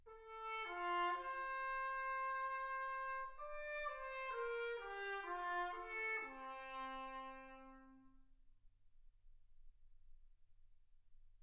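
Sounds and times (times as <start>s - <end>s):
trumpet: 0.0s - 8.3s.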